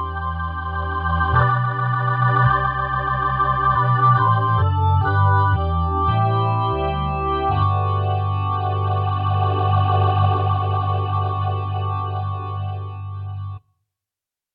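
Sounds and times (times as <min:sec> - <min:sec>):
ballad played on a Kronos OASYS synthesizer: 0:00.0 - 0:13.6.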